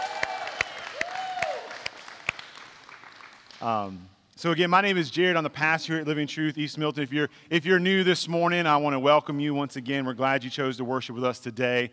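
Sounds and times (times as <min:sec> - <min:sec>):
audience applauding: 0:00.0 - 0:03.8
speech: 0:03.6 - 0:11.9.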